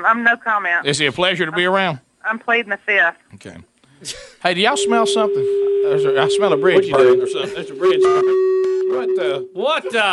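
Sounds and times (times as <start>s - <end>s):
speech: 0.0s - 10.1s
phone beep: 4.8s - 9.5s.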